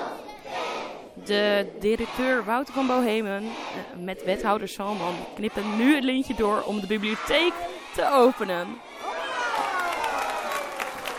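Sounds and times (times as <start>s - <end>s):
schoolchildren's raised voices: 0.0s - 10.3s
crowd chatter: 0.0s - 11.1s
speech: 1.2s - 8.9s
schoolchildren clapping at the opening of a school library: 9.5s - 11.1s.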